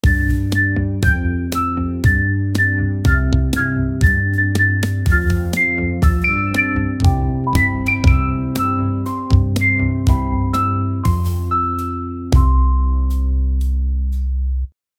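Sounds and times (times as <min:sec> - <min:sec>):
mischievous background music: 0:00.0 - 0:14.2.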